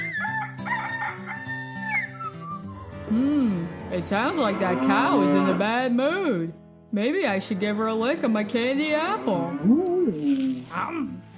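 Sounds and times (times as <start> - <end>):
rooster crowing: 0.2 - 2.1
speech: 3.1 - 11.2.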